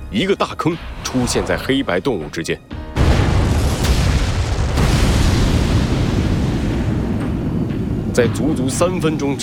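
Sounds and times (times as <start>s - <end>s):
speech: 0.1s - 2.8s, 8.2s - 9.4s
missile explosion: 3.0s - 8.2s.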